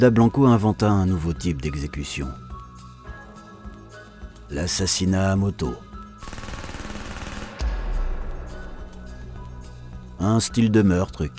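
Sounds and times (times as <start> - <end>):
speech: 0.0 - 2.4, 4.5 - 5.9, 10.2 - 11.3
machine gun fire: 6.2 - 8.9
heavy low boom: 7.5 - 9.9.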